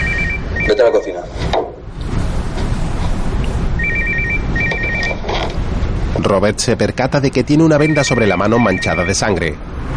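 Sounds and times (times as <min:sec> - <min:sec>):
mobile phone ringing: 0:00.0 - 0:01.1, 0:03.8 - 0:05.2, 0:07.8 - 0:09.3
low noise: 0:00.0 - 0:09.9
speech: 0:00.7 - 0:01.7, 0:06.2 - 0:09.9.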